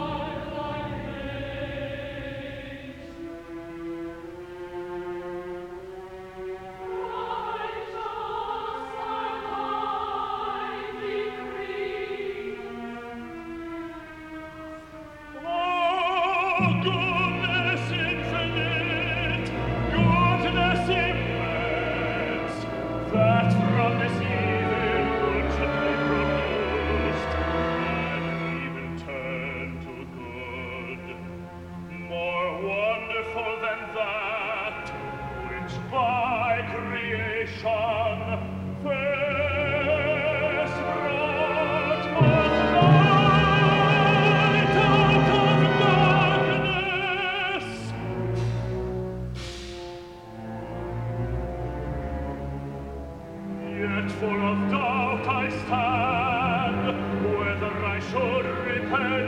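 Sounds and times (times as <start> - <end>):
chorus singing: 0.0 - 49.1, 50.4 - 59.2.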